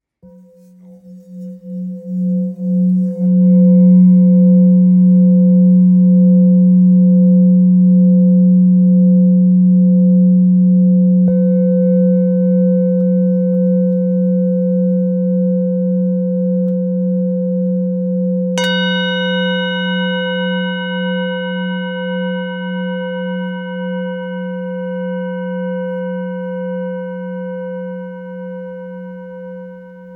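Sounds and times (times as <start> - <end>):
Tibetan singing bowls: 0.2 - 30.1.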